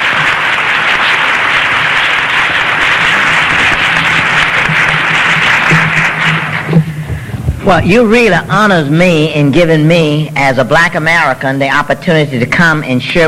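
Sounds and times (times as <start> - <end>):
church gathering audience applause welcoming a guest speaker: 0.0 - 7.8
speech: 7.7 - 13.2.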